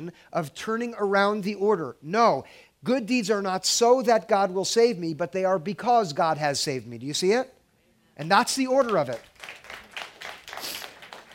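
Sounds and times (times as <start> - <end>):
speech: 0.0 - 7.6, 8.2 - 9.6
audience applause: 8.8 - 11.3.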